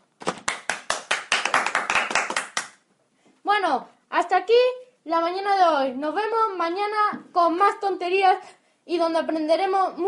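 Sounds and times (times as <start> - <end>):
applause: 0.4 - 2.8
speech: 3.6 - 10.0.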